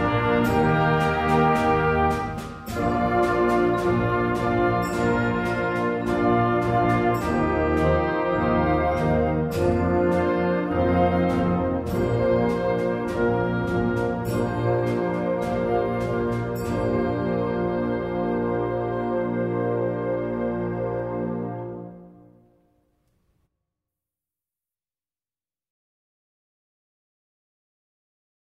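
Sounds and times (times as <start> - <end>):
Christmas carol: 0.0 - 22.6.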